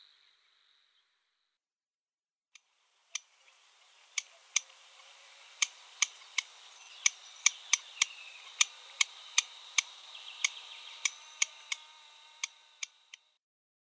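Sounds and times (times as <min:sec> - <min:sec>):
Savi's warbler voice: 0:02.9 - 0:13.2.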